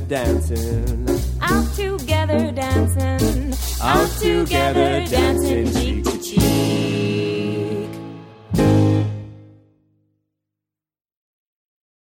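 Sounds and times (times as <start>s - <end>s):
jazz band playing: 0.0s - 9.6s.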